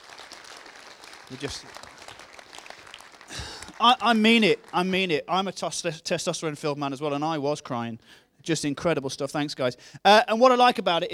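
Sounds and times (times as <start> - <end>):
audience applause for the worship band: 0.0 - 5.0
speech: 1.3 - 1.9, 3.3 - 11.1.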